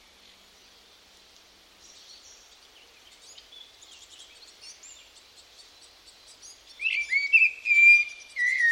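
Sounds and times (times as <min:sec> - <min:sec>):
bird calls: 0:01.9 - 0:08.7.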